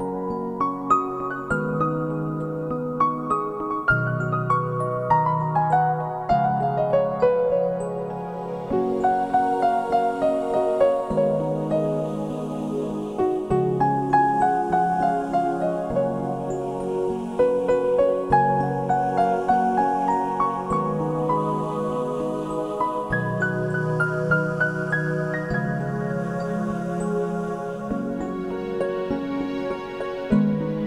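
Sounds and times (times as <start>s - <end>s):
relaxing music: 0.0s - 30.8s.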